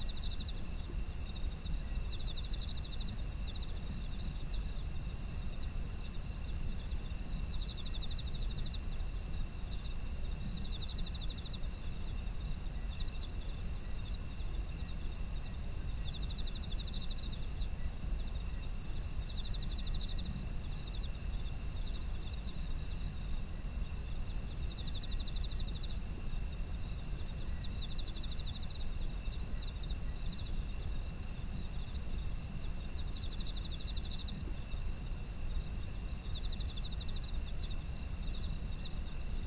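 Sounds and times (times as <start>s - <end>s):
autumn insects chirping: 0.0s - 39.4s.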